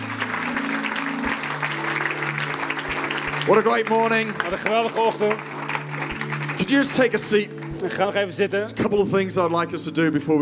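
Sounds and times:
church audience applause: 0.0s - 8.2s
speech: 3.4s - 5.5s, 6.6s - 10.4s.

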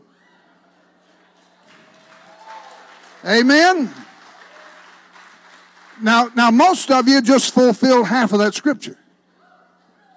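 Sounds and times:
audience clapping and shouting: 1.1s - 7.4s
speech: 3.2s - 4.0s, 6.0s - 9.0s.

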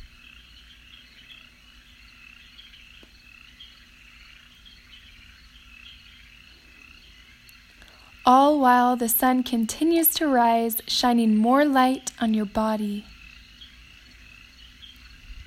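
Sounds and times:
hum of insects: 0.0s - 15.4s
speech: 8.3s - 13.1s.

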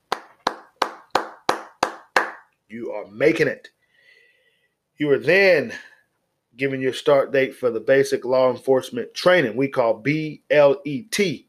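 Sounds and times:
single person clapping hands: 0.0s - 2.5s
speech: 2.7s - 3.8s, 5.0s - 5.9s, 6.6s - 11.4s.

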